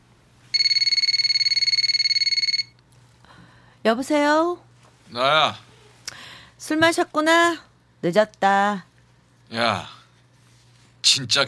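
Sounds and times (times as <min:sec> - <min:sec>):
telephone ringing: 0:00.5 - 0:02.8
speech: 0:03.8 - 0:05.7, 0:06.6 - 0:08.9, 0:09.5 - 0:10.0, 0:11.0 - 0:11.4.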